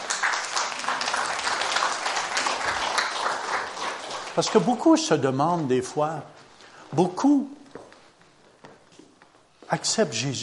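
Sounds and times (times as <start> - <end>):
audience applause: 0.0 - 5.3
speech: 4.4 - 7.6, 9.7 - 10.4.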